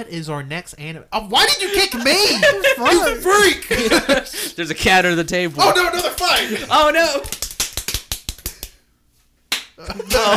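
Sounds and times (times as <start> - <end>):
speech: 0.0 - 7.4, 9.8 - 10.3
laughter: 1.6 - 4.5, 5.6 - 7.3, 9.8 - 10.3
slaps on bare buttocks: 7.2 - 8.8, 9.5 - 9.8.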